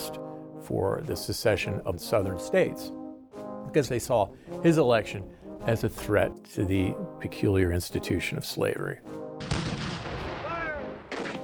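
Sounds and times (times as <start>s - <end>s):
speech: 0.7s - 3.0s, 3.7s - 9.6s
cannon fire in the Confederate bombardment of Fort Sumter, April 1861: 9.4s - 11.4s.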